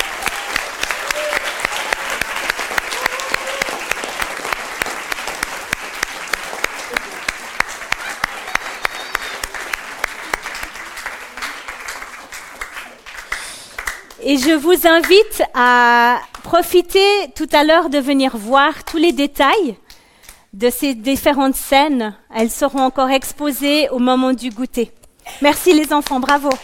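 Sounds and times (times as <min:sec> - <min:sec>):
audience applause: 0:00.0 - 0:14.2
speech: 0:14.3 - 0:19.8, 0:20.6 - 0:26.6.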